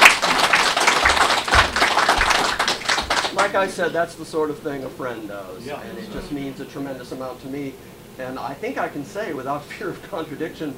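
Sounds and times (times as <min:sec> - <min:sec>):
audience applause: 0:00.0 - 0:03.6
speech: 0:03.4 - 0:10.7.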